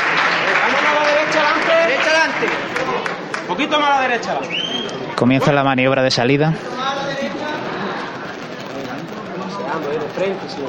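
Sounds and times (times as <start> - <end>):
scattered clapping: 0.0 - 5.0, 7.4 - 10.6
crowd murmuring: 1.8 - 10.6
speech: 3.6 - 6.9, 9.8 - 10.6.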